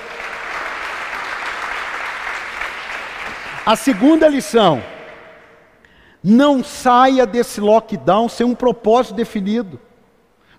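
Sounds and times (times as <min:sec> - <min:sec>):
audience applause: 0:00.0 - 0:04.8
speech: 0:03.7 - 0:04.9, 0:06.2 - 0:09.9.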